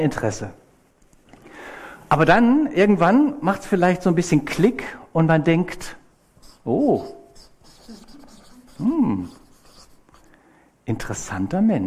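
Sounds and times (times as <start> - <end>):
speech: 0.0 - 0.6, 2.1 - 6.0, 6.6 - 7.2, 8.8 - 9.4, 10.9 - 11.8
pen squeaking drawing a dashed line by hand: 6.4 - 10.0.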